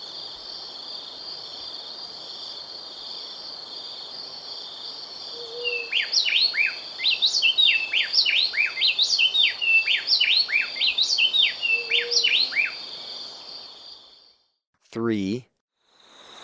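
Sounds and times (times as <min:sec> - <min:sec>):
high insect drone: 0:00.0 - 0:14.3, 0:15.8 - 0:16.4
speckle-breasted wren singing: 0:05.4 - 0:13.4.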